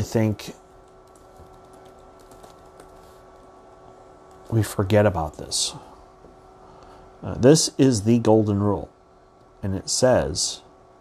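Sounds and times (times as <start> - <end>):
speech: 0.0 - 0.6, 4.5 - 5.9, 7.2 - 8.9, 9.6 - 10.6
steady low hum: 0.0 - 10.9
typing on a computer keyboard during a church study session: 0.8 - 3.1.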